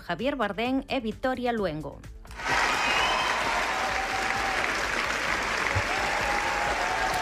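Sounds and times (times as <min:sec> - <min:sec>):
speech: 0:00.1 - 0:02.2
large audience applauding after film screening: 0:02.3 - 0:07.2.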